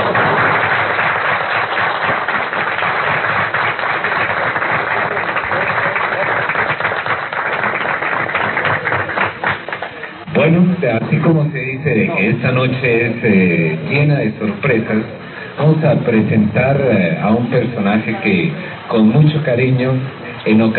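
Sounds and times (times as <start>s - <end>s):
audience applause: 0.0s - 10.3s
speech: 10.9s - 20.7s.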